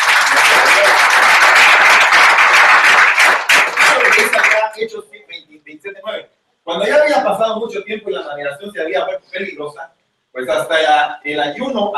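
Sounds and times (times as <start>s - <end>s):
audience applause: 0.0s - 4.7s
speech: 7.3s - 11.9s.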